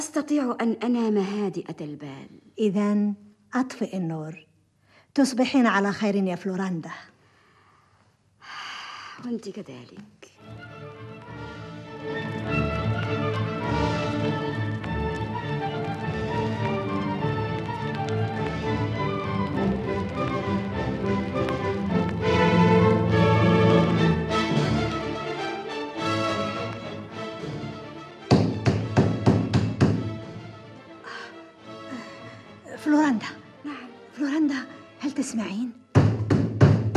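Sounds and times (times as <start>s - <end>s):
speech: 0.1s - 4.5s, 5.2s - 7.1s, 9.2s - 10.7s, 32.9s - 33.4s, 34.2s - 35.8s
music: 10.3s - 36.9s
sharp loud knocking on a door: 28.3s - 30.2s, 36.0s - 36.9s.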